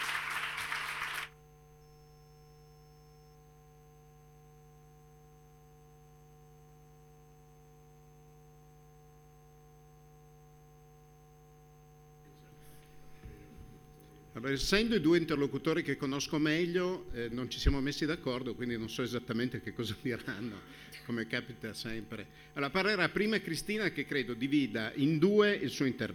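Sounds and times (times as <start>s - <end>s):
audience applause: 0.0s - 1.4s
steady low electrical hum: 0.0s - 26.1s
speech: 14.4s - 26.1s.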